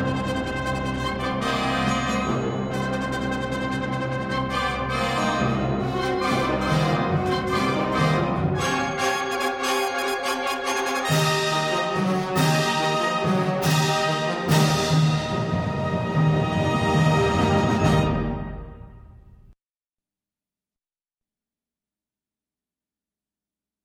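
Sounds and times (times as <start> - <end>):
fanfare: 1.1 - 18.9.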